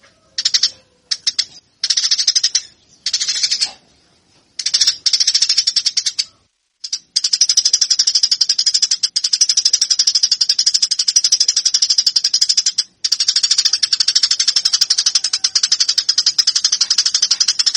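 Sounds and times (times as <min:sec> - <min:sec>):
Eurasian tree sparrow chattering: 0:00.3 - 0:04.0, 0:04.6 - 0:17.7.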